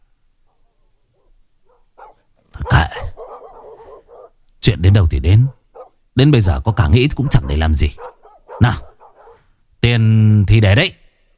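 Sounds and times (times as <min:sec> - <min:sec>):
distant dogs barking in a village: 0:00.4 - 0:04.4, 0:05.3 - 0:09.7
speech: 0:04.7 - 0:05.6, 0:06.2 - 0:08.9, 0:09.8 - 0:11.0.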